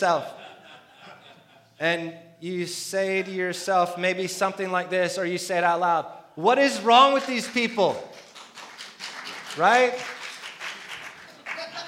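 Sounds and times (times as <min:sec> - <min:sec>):
speech: 0:00.0 - 0:00.4, 0:01.8 - 0:08.2, 0:09.6 - 0:10.1
laughter: 0:00.0 - 0:01.8, 0:11.2 - 0:11.8
audience clapping: 0:06.9 - 0:11.8.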